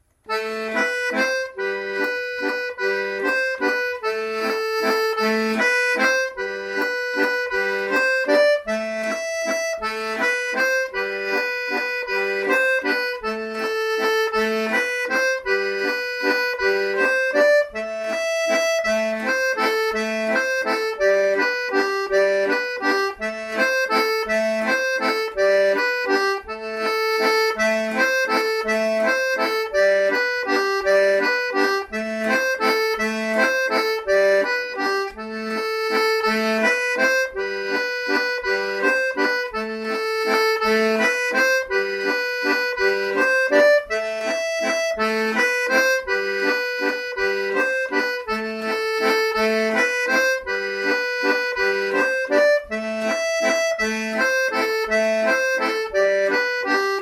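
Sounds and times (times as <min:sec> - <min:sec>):
waltz music: 0:00.0 - 0:57.0.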